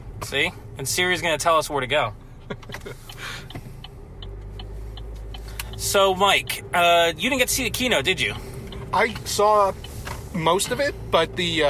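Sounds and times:
car engine rumble while driving home: 0.0 - 11.6
speech: 0.3 - 3.6, 5.8 - 9.8, 10.4 - 11.6.

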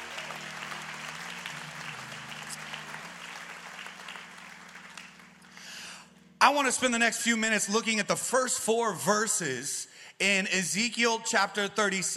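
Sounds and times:
audience applauding worship team: 0.0 - 5.9
speech: 6.5 - 12.1.

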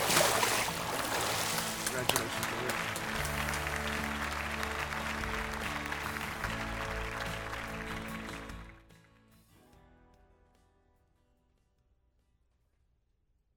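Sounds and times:
crowd applause: 0.0 - 8.8.

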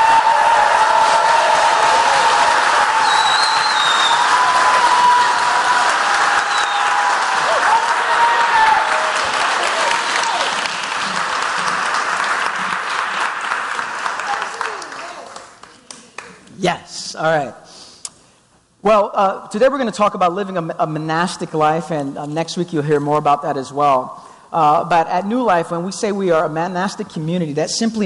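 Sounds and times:
cheering: 0.0 - 15.4
audience applause: 0.0 - 16.3
speech: 17.2 - 17.6, 18.8 - 28.0.

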